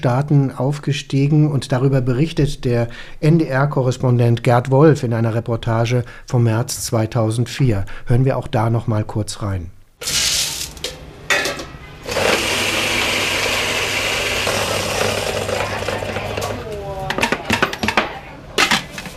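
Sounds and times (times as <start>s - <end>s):
speech: 0.0s - 10.2s
coffee grinder: 10.0s - 11.0s, 12.0s - 16.6s
busy coffee shop in the Rue Pasteur in Saigon: 10.0s - 19.1s.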